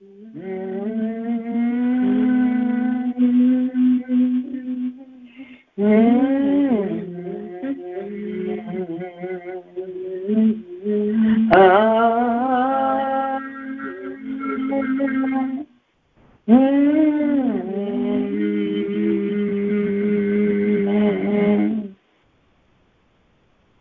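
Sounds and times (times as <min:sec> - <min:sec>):
people humming: 0:00.0 - 0:15.7, 0:16.5 - 0:22.0.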